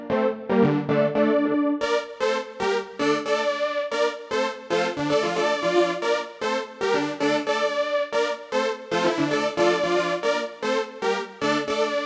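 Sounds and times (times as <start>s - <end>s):
Prophet 6 synthesizer: 0.0s - 12.0s.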